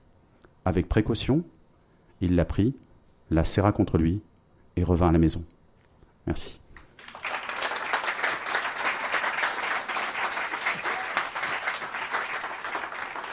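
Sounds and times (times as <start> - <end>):
speech: 0.7 - 1.6, 2.2 - 5.6, 6.2 - 7.2
audience applause: 7.0 - 13.3.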